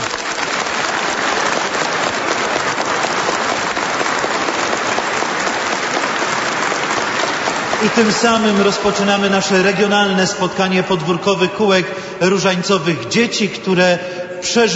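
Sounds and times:
audience applause: 0.0 - 9.4
speech: 7.8 - 14.7.

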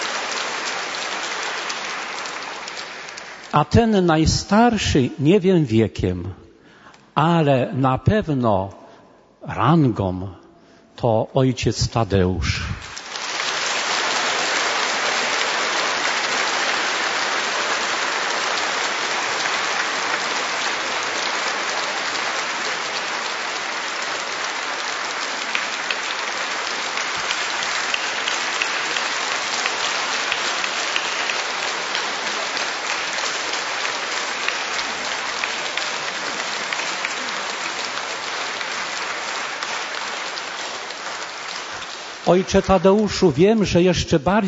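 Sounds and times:
dense applause from a large audience: 0.0 - 4.8, 12.7 - 43.1
speech: 3.5 - 6.4, 7.2 - 8.8, 9.4 - 10.4, 11.0 - 12.7, 42.3 - 44.4.

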